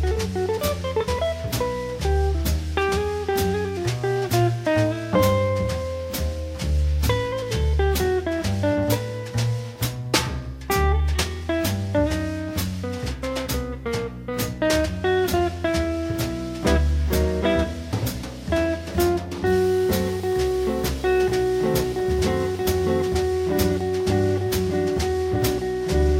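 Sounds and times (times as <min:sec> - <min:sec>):
jazz band playing: 0:00.0 - 0:26.1.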